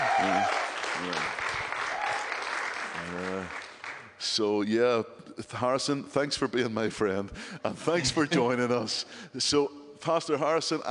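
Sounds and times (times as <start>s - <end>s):
congregation clapping to welcome a guest pastor: 0.0s - 4.2s
speech: 0.2s - 1.5s, 4.3s - 10.8s.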